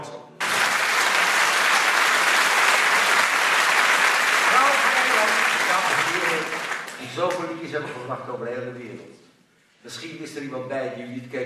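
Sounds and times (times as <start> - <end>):
audience applause: 0.4 - 7.4
speech: 7.2 - 9.2, 9.8 - 11.4.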